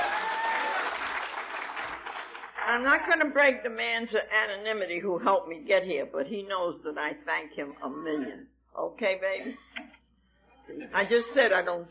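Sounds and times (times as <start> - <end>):
audience applause: 0.0 - 2.6
speech: 2.7 - 10.0, 10.7 - 11.8.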